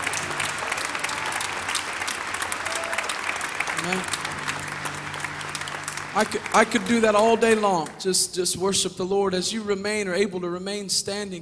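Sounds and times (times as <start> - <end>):
audience clapping hands: 0.0 - 8.4
speech: 6.2 - 11.4.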